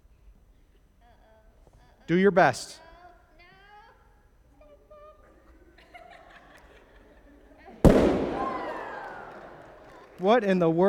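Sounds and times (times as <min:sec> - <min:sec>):
speech: 0:02.1 - 0:02.8, 0:10.2 - 0:10.8
laughter: 0:04.9 - 0:10.8
balloon popping: 0:07.9 - 0:08.7
confetti scattering with a rustle and hiss: 0:07.9 - 0:10.2.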